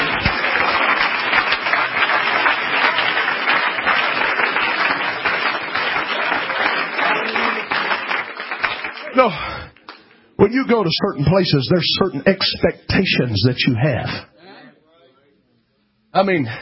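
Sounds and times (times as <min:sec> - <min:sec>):
audience clapping hands: 0:00.0 - 0:10.2
speech: 0:09.2 - 0:09.5, 0:10.4 - 0:14.3, 0:16.2 - 0:16.6.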